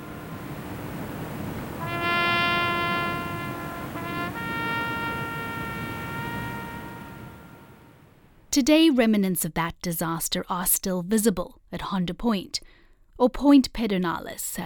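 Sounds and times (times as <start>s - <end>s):
trumpet played at the base: 0.0s - 8.2s
speech: 8.5s - 14.6s.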